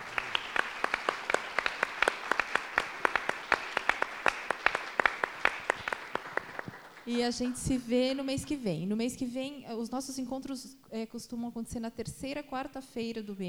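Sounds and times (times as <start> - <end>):
audience applause for the guests at a discussion event: 0.0 - 7.1
speech: 7.1 - 13.4.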